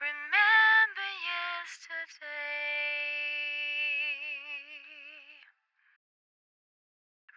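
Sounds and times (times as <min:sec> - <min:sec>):
vocal in F at 65 bpm: 0:00.0 - 0:05.5.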